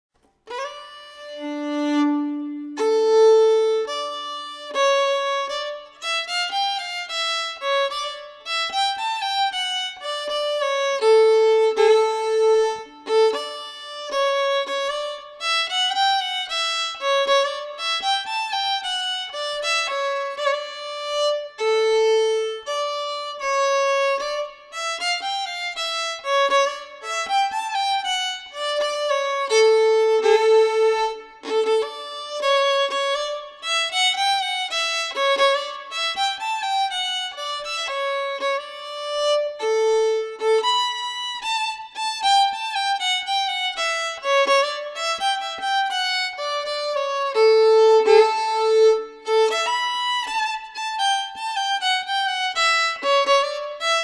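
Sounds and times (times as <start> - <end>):
slow polska folk tune: 0.2 - 54.0.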